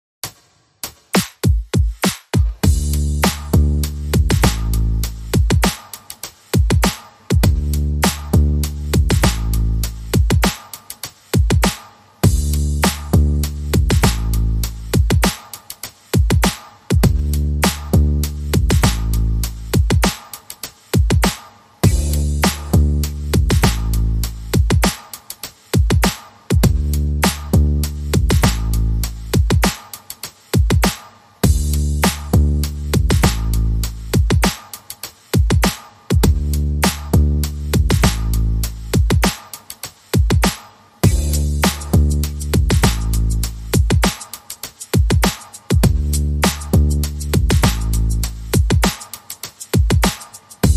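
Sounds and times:
drums: 0:00.2 - 0:50.7
bass: 0:02.6 - 0:05.8, 0:07.3 - 0:10.5, 0:12.2 - 0:15.4, 0:16.9 - 0:20.2, 0:21.8 - 0:24.9, 0:26.5 - 0:29.7, 0:31.4 - 0:34.5, 0:36.1 - 0:39.3, 0:41.0 - 0:44.1, 0:45.7 - 0:48.9.

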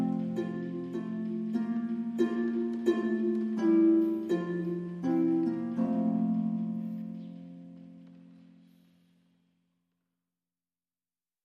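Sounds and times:
harp playing Christmas carol: 0:00.0 - 0:08.6.

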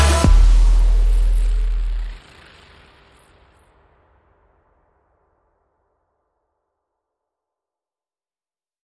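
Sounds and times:
bomba beat: 0:00.0 - 0:02.2.

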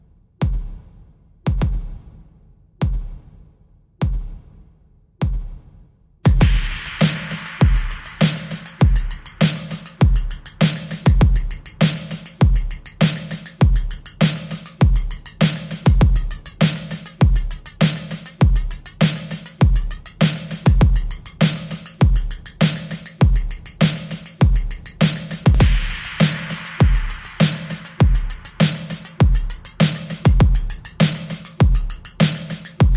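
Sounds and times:
drums: 0:00.0 - 0:32.9.

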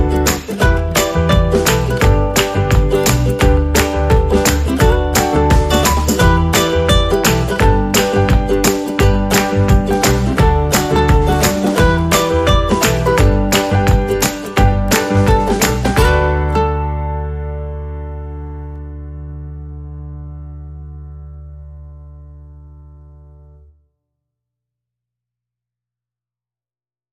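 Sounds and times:
ukulele: 0:00.0 - 0:20.4.

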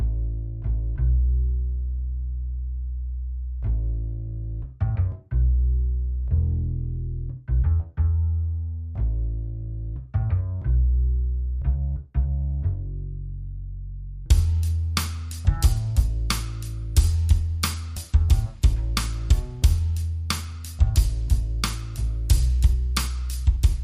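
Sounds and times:
bass: 0:00.0 - 0:23.8
drums: 0:14.3 - 0:23.8.

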